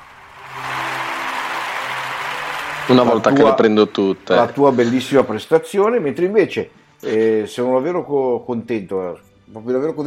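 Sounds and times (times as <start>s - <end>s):
studio audience applause: 0.0s - 4.6s
speech: 2.9s - 10.0s.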